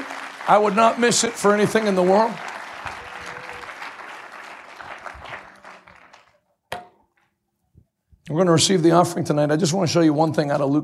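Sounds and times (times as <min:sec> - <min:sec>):
audience clapping: 0:00.0 - 0:06.5
speech: 0:00.5 - 0:03.0, 0:08.4 - 0:10.8.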